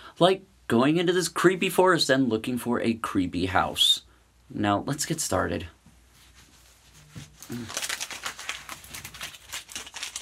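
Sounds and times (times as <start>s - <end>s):
speech: 0.2s - 5.8s, 7.2s - 7.8s
old paper map being unfolded: 6.1s - 10.2s.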